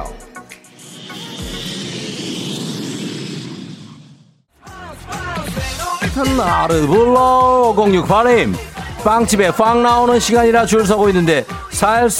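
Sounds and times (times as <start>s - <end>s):
music: 0.0s - 2.5s, 4.5s - 12.1s
jet roar: 0.1s - 4.5s
speech: 6.2s - 12.1s.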